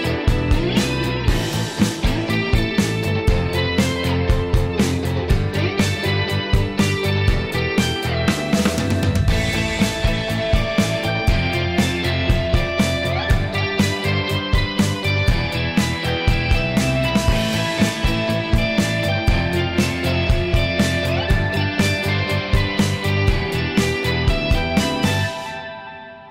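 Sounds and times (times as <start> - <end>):
game background music for an ad: 0.0 - 25.7.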